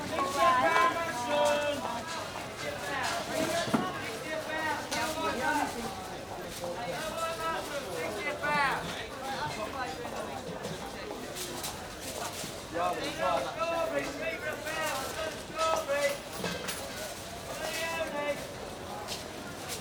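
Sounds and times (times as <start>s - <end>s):
street market crowd in London: 0.0s - 19.7s.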